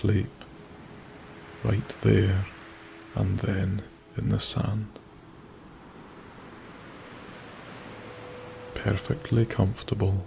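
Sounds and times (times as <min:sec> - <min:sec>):
speech: 0:00.0 - 0:00.4, 0:01.6 - 0:02.6, 0:03.2 - 0:05.0, 0:08.8 - 0:10.2
ocean waves on beach: 0:00.0 - 0:10.2.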